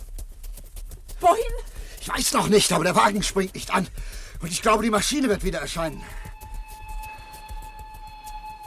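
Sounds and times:
speech: 1.2s - 6.2s
approaching train rumble: 1.2s - 8.6s
approaching train horn: 6.0s - 8.6s.

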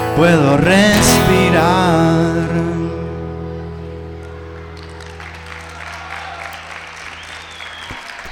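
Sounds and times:
speech: 0.2s - 2.8s
audience applause after a live song at a radio app launch event: 4.2s - 8.2s.

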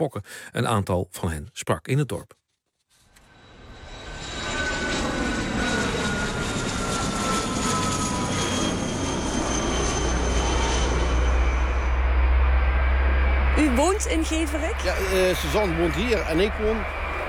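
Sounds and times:
speech: 0.0s - 2.4s, 13.6s - 17.0s
high airplane engine whine dropping in pitch: 3.3s - 17.2s
airplane departing from an airfield, heavy engine roar: 3.4s - 17.2s
deep rumble: 3.6s - 17.2s.

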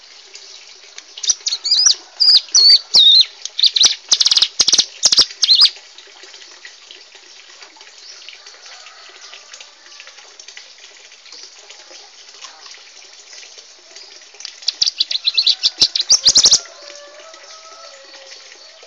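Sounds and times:
bar-winged prinia adult and young birds singing: 1.2s - 5.8s, 14.0s - 18.8s.

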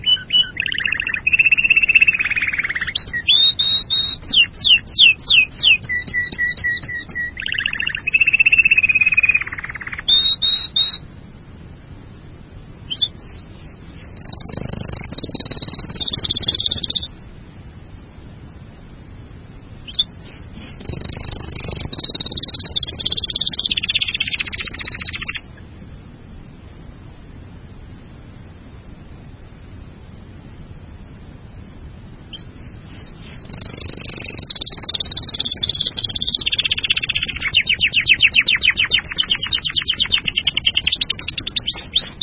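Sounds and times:
bird song trill: 0.0s - 11.1s, 12.8s - 17.2s, 19.8s - 25.6s, 32.3s - 42.2s.

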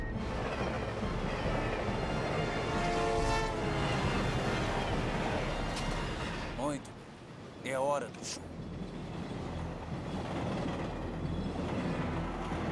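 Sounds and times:
oncoming train horn: 0.0s - 6.6s
oncoming train: 0.0s - 12.7s
speech: 7.7s - 8.5s.

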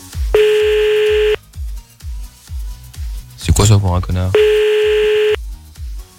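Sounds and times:
telephone tone during redial of a prank call: 0.3s - 1.4s, 4.3s - 5.4s
speech: 3.7s - 4.7s.

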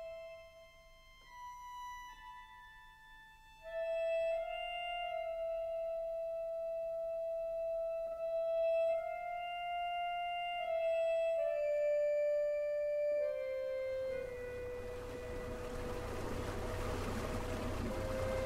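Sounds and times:
small motorboat engine droning leaving a harbour at Sestroretsk: 3.7s - 18.4s
water wash under a motorboat: 14.3s - 18.4s.

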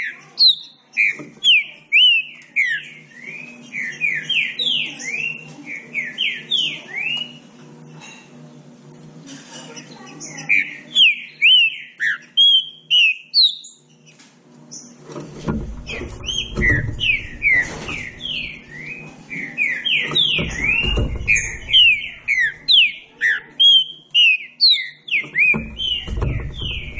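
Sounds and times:
Green-winged saltator song: 0.0s - 7.5s, 10.1s - 14.1s, 15.8s - 26.9s
low-pitched background thumping: 15.2s - 19.4s, 20.0s - 22.7s, 25.5s - 26.9s.

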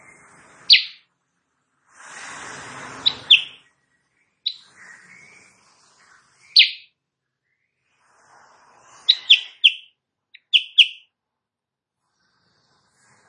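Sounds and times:
Sooty-headed bulbul singing in the morning: 0.6s - 1.0s, 3.0s - 3.7s, 4.4s - 5.3s, 6.4s - 6.9s, 9.1s - 11.1s.

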